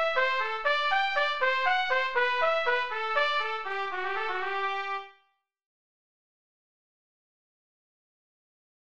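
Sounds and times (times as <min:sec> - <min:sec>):
trumpet: 0:00.0 - 0:05.4.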